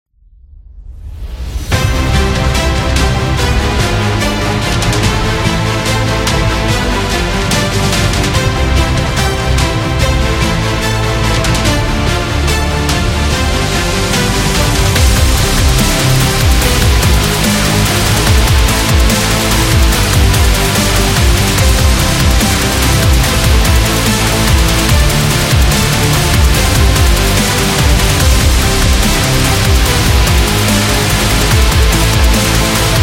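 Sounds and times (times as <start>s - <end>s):
epic win music: 1.2s - 33.0s.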